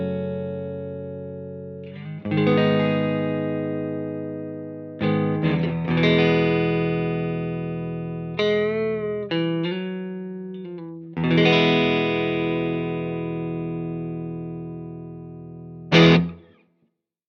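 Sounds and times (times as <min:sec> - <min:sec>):
Firebird guitar neck pickup played clean through Fender Deluxe: 0:00.0 - 0:16.6.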